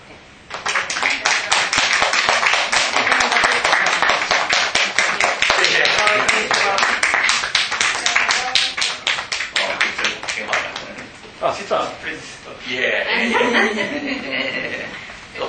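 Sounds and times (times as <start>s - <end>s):
audience clapping to welcome guests: 0.5s - 11.1s
laughter: 5.0s - 7.0s, 13.1s - 15.1s.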